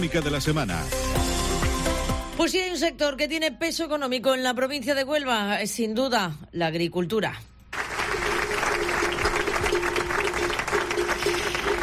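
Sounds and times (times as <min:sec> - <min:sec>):
speech: 0:00.0 - 0:01.3, 0:02.4 - 0:07.5
farmers applauding at a protest rally: 0:07.7 - 0:11.8.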